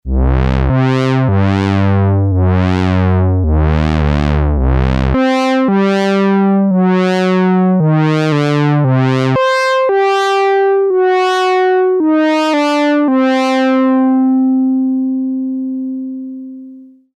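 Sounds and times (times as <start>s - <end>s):
pulse-width modulated synth oscillator: 0.1s - 15.4s.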